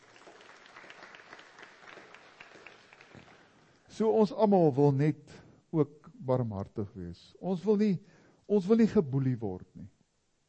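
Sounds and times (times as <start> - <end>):
audience applause: 0.0 - 3.9
speech: 4.0 - 10.0.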